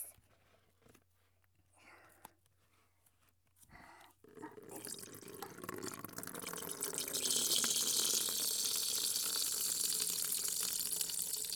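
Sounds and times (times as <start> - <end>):
urine splashing into a washbasin: 4.3 - 11.5.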